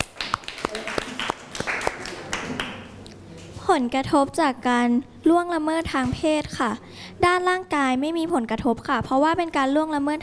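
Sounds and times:
classroom clapping for a classmate: 0.0s - 3.0s
speech: 3.7s - 10.2s.

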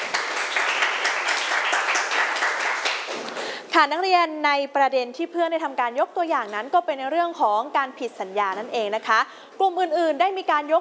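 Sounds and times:
students clapping hands: 0.0s - 3.6s
speech: 3.8s - 10.8s.

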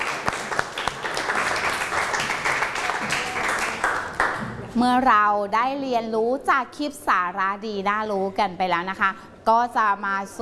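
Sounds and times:
applause: 0.0s - 4.6s
speech: 4.8s - 10.3s.

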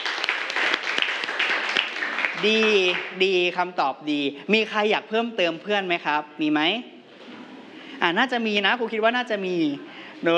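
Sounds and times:
classroom applause: 0.0s - 3.4s
speech: 2.4s - 6.9s, 8.0s - 10.3s.

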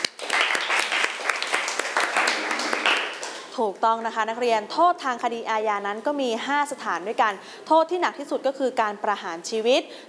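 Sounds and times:
classroom applause: 0.0s - 3.5s
speech: 3.6s - 10.0s.

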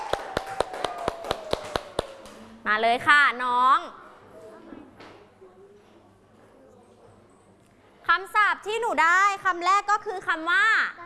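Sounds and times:
clapping: 0.0s - 2.5s
speech: 2.6s - 4.0s, 8.1s - 11.0s.

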